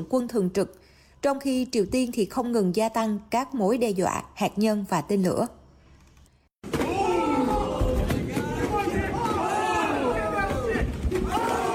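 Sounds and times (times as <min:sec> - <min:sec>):
speech: 0:00.0 - 0:05.6
boxing match between two humanoid robots: 0:06.6 - 0:11.7.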